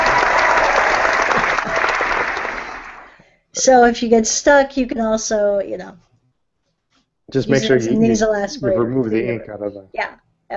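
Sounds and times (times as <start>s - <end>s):
crowd applause: 0.0s - 3.2s
speech: 3.6s - 6.1s, 7.3s - 10.5s.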